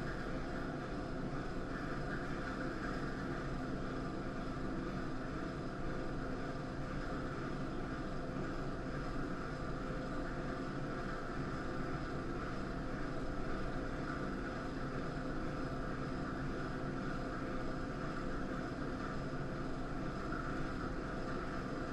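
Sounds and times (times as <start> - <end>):
public restroom air conditioner room tone: 0.0 - 21.9.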